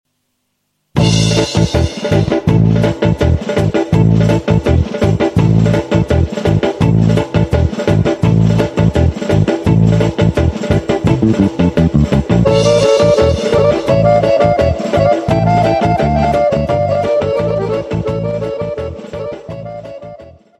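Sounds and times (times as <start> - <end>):
Macedonian cocek dance music: 1.0 - 20.5.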